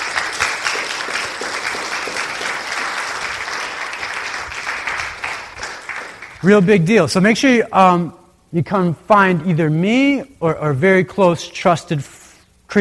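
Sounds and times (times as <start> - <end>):
audience applause: 0.0 - 6.6
speech: 6.4 - 12.7.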